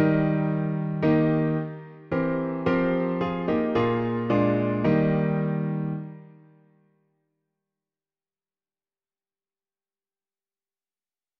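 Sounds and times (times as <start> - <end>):
piano: 0.0 - 7.0.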